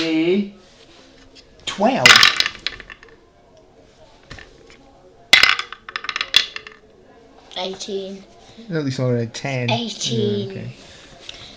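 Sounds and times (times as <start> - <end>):
speech: 0.0 - 0.6, 1.8 - 2.4, 7.6 - 10.9
dice clattering across a hard surface: 2.0 - 3.2, 5.4 - 6.8.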